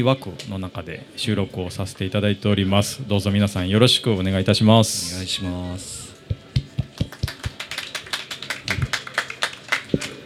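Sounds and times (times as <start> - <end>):
speech: 0.0 - 6.0
audience applause: 6.8 - 10.2.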